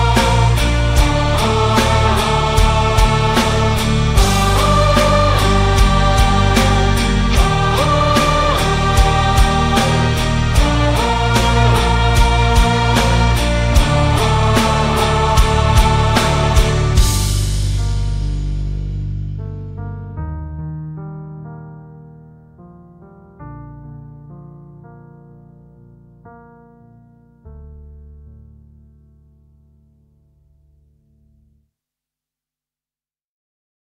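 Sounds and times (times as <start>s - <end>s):
epic gothic metal: 0.0s - 19.2s.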